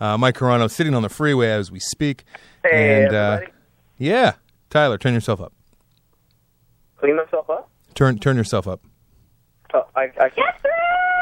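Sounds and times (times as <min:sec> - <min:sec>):
speech: 0:00.0 - 0:05.6, 0:07.0 - 0:08.9, 0:09.7 - 0:11.0
woman yelling at a baseball game through a phone call: 0:02.7 - 0:03.2, 0:10.3 - 0:11.2.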